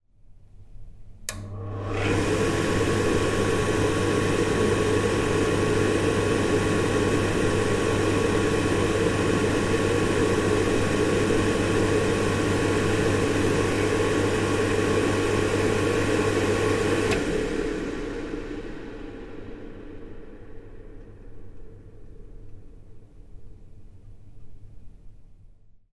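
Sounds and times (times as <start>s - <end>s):
automatic hand dryer: 1.3s - 20.6s.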